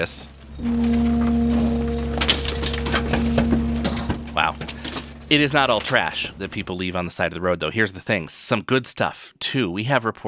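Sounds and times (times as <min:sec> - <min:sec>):
speech: 0:00.0 - 0:01.6, 0:05.3 - 0:10.2
garbage truck crushing a couch: 0:00.0 - 0:07.1.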